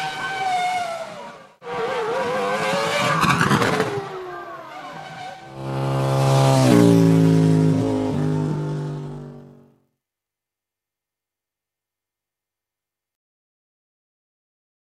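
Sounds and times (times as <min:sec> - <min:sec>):
motorcycles: 0:00.0 - 0:09.8.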